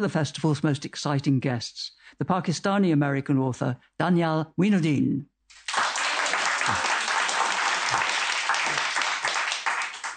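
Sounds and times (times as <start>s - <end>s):
speech: 0.0s - 5.6s, 6.7s - 6.9s
audience applauding at an author event in the Edinburgh Bookshop: 5.6s - 10.1s.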